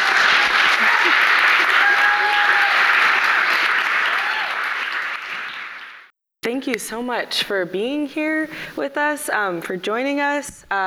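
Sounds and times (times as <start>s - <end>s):
audience applause welcoming an author and a student at a food justice book talk: 0.0s - 6.1s
speech: 6.6s - 10.8s.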